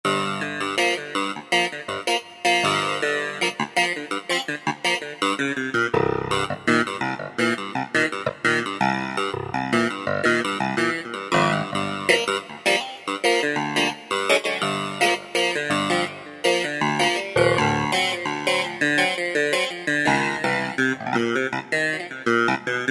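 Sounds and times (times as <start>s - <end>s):
clavinet: 0.1s - 22.8s.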